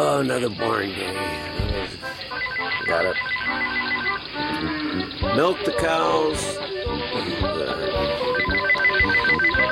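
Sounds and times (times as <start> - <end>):
speech: 0.2 - 2.0, 2.9 - 9.4
telephone ringing with loud melodic electronic ringtone: 2.3 - 4.5, 7.9 - 9.7.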